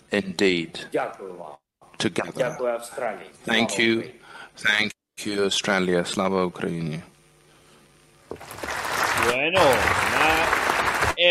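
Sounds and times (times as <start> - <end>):
speech: 0.1 - 7.1, 8.3 - 10.6
parliament standing ovation applause: 8.4 - 11.2.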